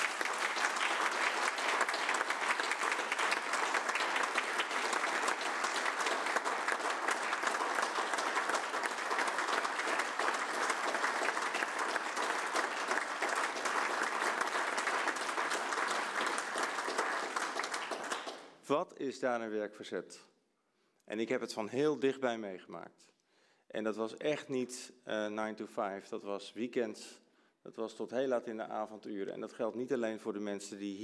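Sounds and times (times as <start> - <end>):
audience applause: 0.0 - 18.5
speech: 18.7 - 20.3, 21.1 - 31.0.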